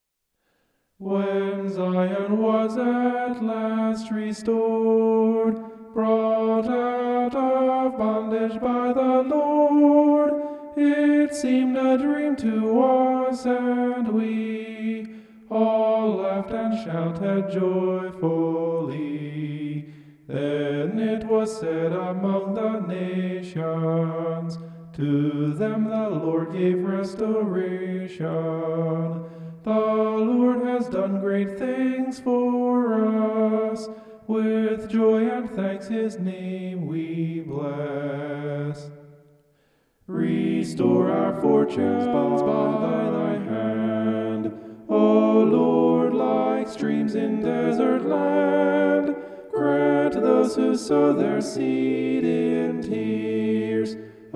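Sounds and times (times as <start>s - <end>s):
homophonic vocals: 1.0s - 39.1s, 40.1s - 54.3s.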